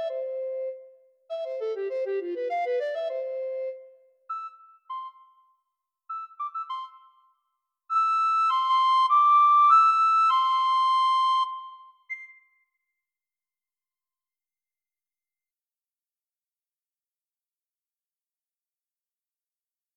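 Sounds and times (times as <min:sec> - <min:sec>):
alto recorder solo: 0:00.0 - 0:05.5, 0:06.1 - 0:12.5.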